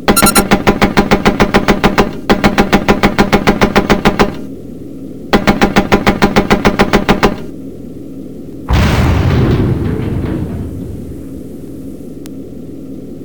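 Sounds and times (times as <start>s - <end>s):
machine gun fire: 0.1s - 4.4s, 5.4s - 7.5s, 8.7s - 11.8s
loud crashing explosion: 8.7s - 11.9s.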